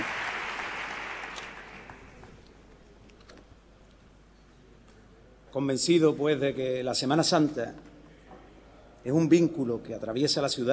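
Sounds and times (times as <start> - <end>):
ovation applause for the speaker: 0.0 - 2.3
speech: 5.5 - 7.9, 9.0 - 10.7.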